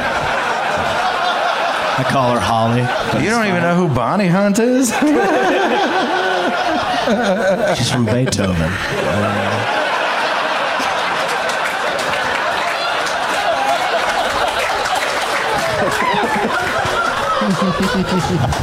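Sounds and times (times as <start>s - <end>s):
crowd laughing and chuckling: 0.0s - 18.6s
speech: 2.0s - 9.5s, 15.8s - 18.6s
round of applause: 9.6s - 18.6s.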